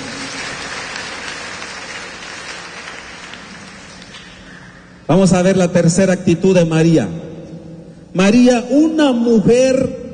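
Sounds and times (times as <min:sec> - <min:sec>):
audience clapping hands: 0:00.0 - 0:04.5
speech: 0:05.1 - 0:07.2, 0:08.2 - 0:10.0.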